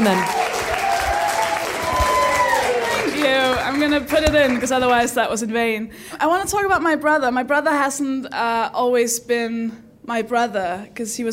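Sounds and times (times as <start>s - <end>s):
speech: 0.0s - 0.4s, 3.2s - 11.3s
audience applause: 0.0s - 4.8s.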